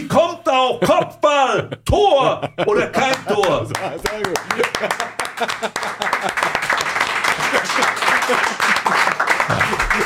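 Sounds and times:
speech: 0.2s - 8.8s
laughter: 0.7s - 10.0s
applause: 3.0s - 10.0s.

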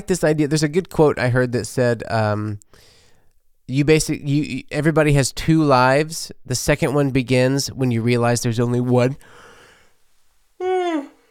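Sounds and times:
speech: 0.0s - 3.0s, 3.7s - 9.4s
person yawning: 10.6s - 11.3s.

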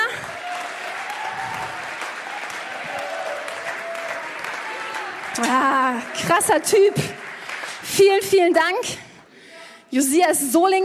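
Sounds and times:
audience applause: 0.0s - 8.2s
speech: 5.4s - 7.2s, 7.9s - 9.0s, 9.9s - 10.8s.

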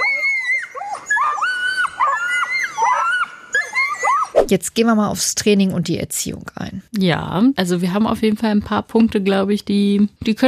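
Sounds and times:
Nova Scotia duck tolling retriever scream: 0.0s - 4.5s
speech: 4.5s - 10.4s.

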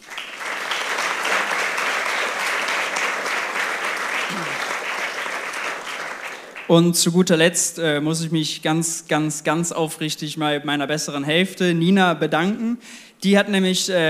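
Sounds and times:
audience applause: 0.0s - 6.7s
speech: 6.7s - 14.0s.

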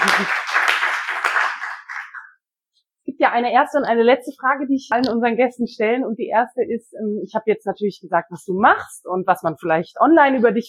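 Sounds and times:
audience applause: 0.0s - 2.3s
speech: 0.2s - 0.4s, 3.2s - 10.6s.

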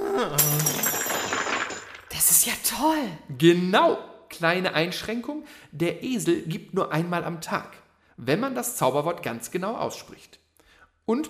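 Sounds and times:
many gold coins falling to the floor: 0.4s - 2.1s
speech: 2.8s - 10.4s, 11.1s - 11.2s.

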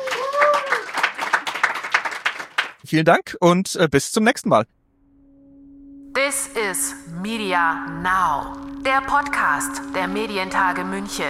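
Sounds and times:
person whooping: 0.0s - 1.0s
crowd applause: 0.0s - 2.8s
speech: 2.9s - 4.8s, 6.4s - 11.2s.

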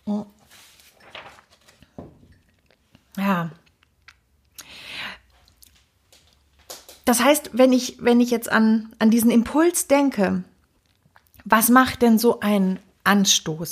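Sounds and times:
person taking a sip of water: 2.3s - 5.8s, 10.6s - 11.5s
speech: 3.2s - 3.6s, 7.1s - 10.5s, 11.5s - 13.7s.

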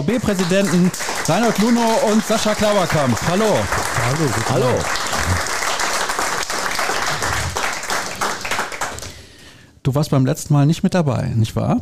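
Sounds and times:
speech: 0.0s - 5.6s, 9.8s - 11.8s
audience applause: 0.0s - 9.2s.

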